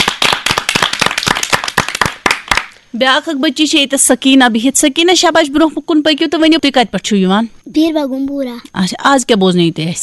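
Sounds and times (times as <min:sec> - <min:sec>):
audience clapping loudly for a child at a program: 0:00.0 - 0:02.8
speech: 0:02.9 - 0:10.0.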